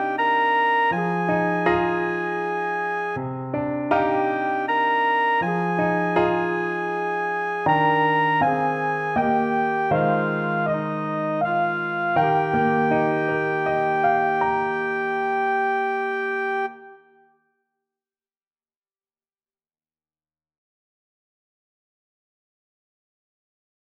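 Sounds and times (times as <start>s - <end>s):
trumpet: 0.0s - 3.2s, 3.9s - 17.2s.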